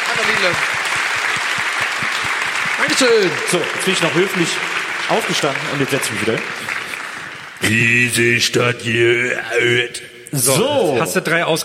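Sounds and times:
audience applause: 0.0s - 8.0s
speech: 0.2s - 0.8s, 2.8s - 6.8s, 7.6s - 11.6s.

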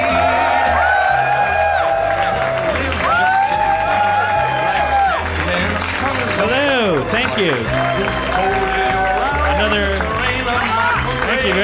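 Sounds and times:
live comedy-show crowd cheering and whooping: 0.0s - 6.6s, 7.4s - 9.8s
live comedy-show crowd applauding as the host is welcomed: 0.0s - 11.6s
speech: 7.4s - 8.7s.

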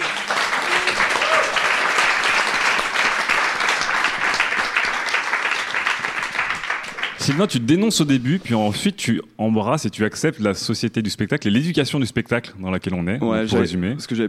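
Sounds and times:
crowd applauding: 0.0s - 7.6s
speech: 7.2s - 14.2s.

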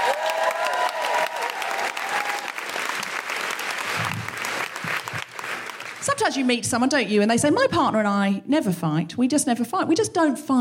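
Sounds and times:
audience applause in Brighton welcoming a comedian: 0.0s - 6.4s
speech: 6.2s - 10.5s.

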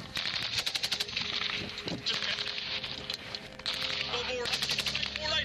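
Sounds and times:
machine-gun fire in a battle with Taliban fighters: 0.1s - 2.6s, 3.6s - 5.2s
rifle shots in a battle between British Army soldiers and Taliban fighters: 0.1s - 2.9s, 3.6s - 5.2s.

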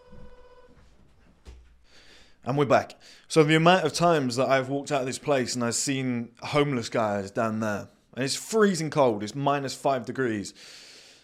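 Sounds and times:
phone buzzer ringing: 0.0s - 0.8s
speech: 2.4s - 10.9s.

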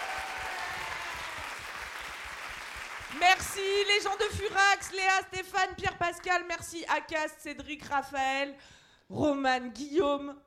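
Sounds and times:
audience applauding and cheering: 0.0s - 5.0s
speech: 3.1s - 10.4s.

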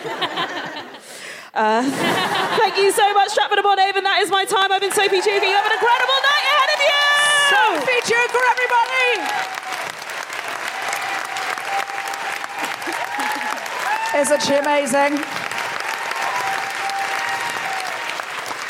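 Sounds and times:
laughter: 0.0s - 1.0s, 1.8s - 3.1s, 12.4s - 13.7s
speech: 1.6s - 6.2s, 7.7s - 9.5s, 14.2s - 15.3s
cheering: 4.8s - 18.6s
live audience applauding: 4.8s - 18.6s.

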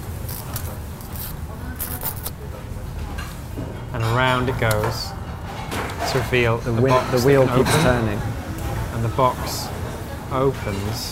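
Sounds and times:
gift wrapping paper crackling and tearing: 0.0s - 2.4s
speech: 4.0s - 5.2s, 6.1s - 8.3s, 9.0s - 11.0s.

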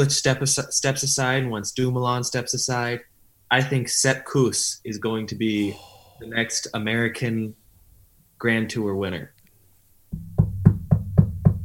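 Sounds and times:
speech: 0.0s - 7.6s, 8.4s - 9.4s
knocking on wood: 10.1s - 11.6s.

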